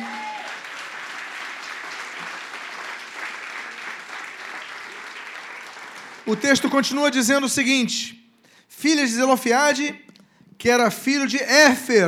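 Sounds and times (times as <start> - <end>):
audience applause: 0.0 - 6.4
speech: 6.3 - 8.2, 8.8 - 10.0, 10.6 - 12.0.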